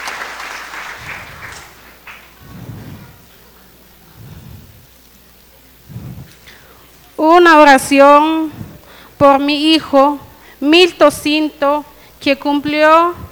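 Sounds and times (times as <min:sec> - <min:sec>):
audience applause: 0:00.0 - 0:03.4
speech: 0:07.2 - 0:08.6, 0:09.2 - 0:13.2.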